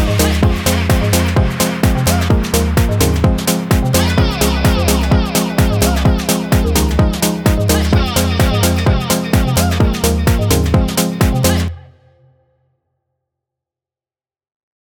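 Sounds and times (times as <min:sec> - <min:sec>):
FM UK garage house keys: 0:00.0 - 0:11.7.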